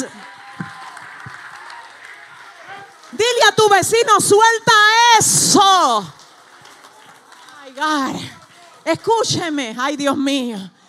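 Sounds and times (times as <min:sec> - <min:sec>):
loud audience applause: 0:00.0 - 0:09.7
voices and cheers: 0:00.0 - 0:10.0
speech: 0:03.6 - 0:06.2, 0:07.7 - 0:10.8.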